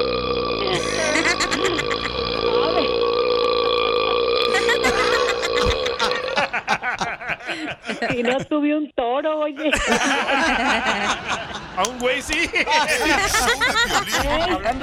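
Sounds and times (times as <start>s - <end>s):
long loud burp: 0.0s - 6.6s
laughter: 0.7s - 2.8s, 4.5s - 8.5s, 9.6s - 14.8s
speech: 8.2s - 14.8s.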